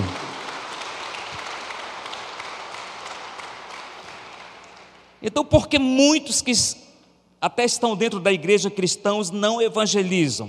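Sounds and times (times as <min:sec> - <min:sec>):
crowd applauding: 0:00.0 - 0:05.2
speech: 0:05.2 - 0:06.8, 0:07.4 - 0:10.4.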